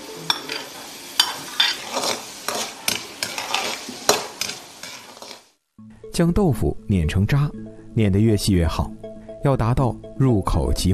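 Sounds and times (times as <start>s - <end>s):
diced button mushrooms, shrimp and sea cucumber stir-frying in hot oil: 0.0s - 5.6s
spatula scraping against the pan: 0.3s - 5.5s
speech: 6.2s - 10.9s.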